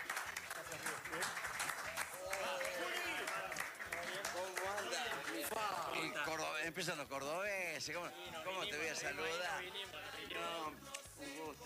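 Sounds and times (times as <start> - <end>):
applause sound effect: 0.0 - 6.1
speech: 5.5 - 11.6.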